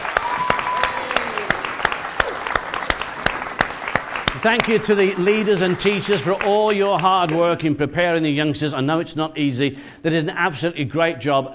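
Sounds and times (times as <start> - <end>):
audience applause: 0.0 - 7.5
speech: 4.4 - 11.5.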